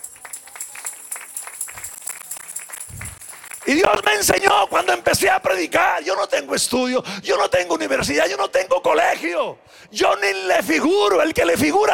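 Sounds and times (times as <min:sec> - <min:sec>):
audience applauding: 0:00.0 - 0:04.9
speech: 0:03.7 - 0:11.9.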